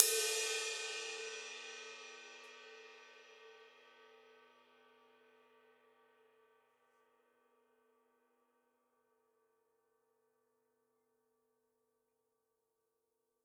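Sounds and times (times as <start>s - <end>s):
ride cymbal on a Gretsch drum kit: 0.0s - 2.5s.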